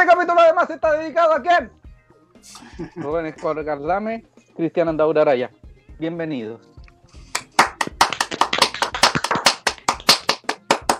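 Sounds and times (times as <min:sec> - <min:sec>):
speech: 0:00.0 - 0:01.8, 0:02.4 - 0:06.7
laughter: 0:02.6 - 0:03.4
applause: 0:07.3 - 0:10.9.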